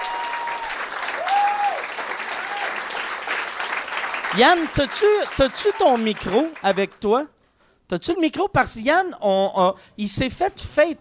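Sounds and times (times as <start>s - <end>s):
audience applause: 0.0s - 6.8s
speech: 4.4s - 7.3s, 7.9s - 11.0s.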